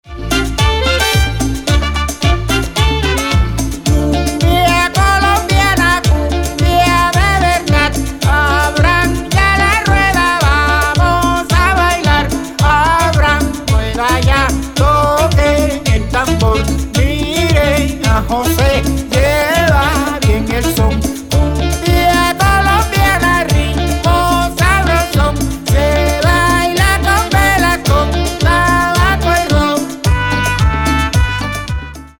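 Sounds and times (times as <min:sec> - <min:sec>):
cumbia music: 0:00.0 - 0:32.1.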